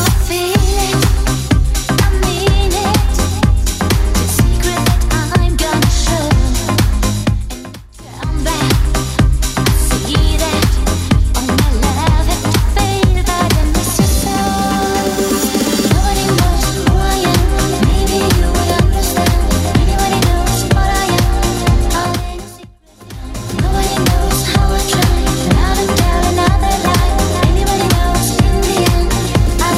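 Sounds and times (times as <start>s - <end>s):
90s drum machine beat: 0.0s - 29.7s.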